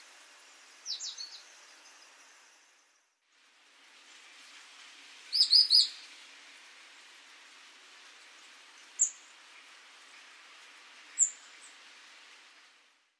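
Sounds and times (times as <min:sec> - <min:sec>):
steady hiss: 0:00.0 - 0:13.1
great tit calls: 0:00.7 - 0:02.6, 0:05.3 - 0:06.0.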